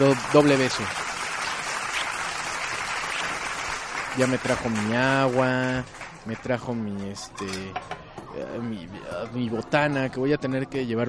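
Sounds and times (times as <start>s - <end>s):
speech: 0.0s - 1.0s, 4.2s - 11.0s
applause: 0.0s - 7.1s.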